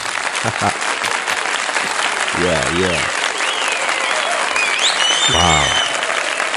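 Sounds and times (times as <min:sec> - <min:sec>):
voice calling out: 0:00.0 - 0:03.1, 0:05.3 - 0:05.8
laughter: 0:00.0 - 0:03.2, 0:05.2 - 0:05.9
audience applause: 0:00.0 - 0:06.5
speech: 0:00.4 - 0:01.0, 0:01.8 - 0:03.2, 0:05.3 - 0:05.8.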